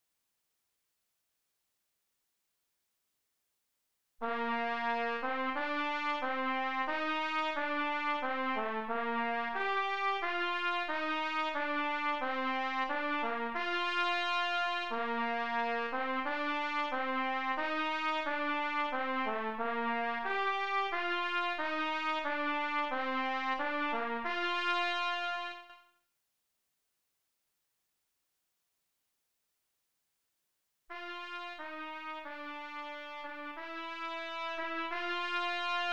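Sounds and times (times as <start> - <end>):
trumpet playing: 4.2 - 25.8, 30.9 - 35.9.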